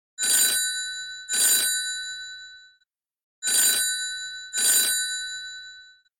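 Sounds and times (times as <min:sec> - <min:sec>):
Huawei Enjoy 60X phone ringtone: 0:00.2 - 0:02.8, 0:03.4 - 0:06.1.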